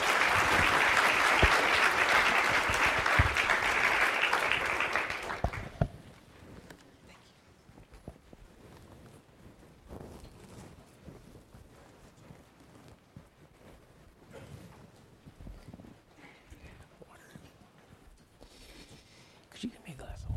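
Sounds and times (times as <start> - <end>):
large crowd applause welcoming a speaker: 0.0 - 5.9.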